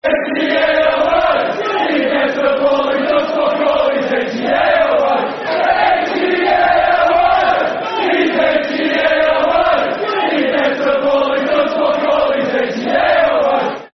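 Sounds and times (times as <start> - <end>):
football crowd chanting: 0.0 - 13.9.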